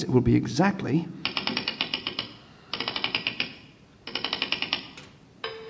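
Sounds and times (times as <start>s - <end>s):
speech: 0.0s - 1.2s
wind-up clockwork mechanism on a desk writing like a hand: 1.3s - 5.1s.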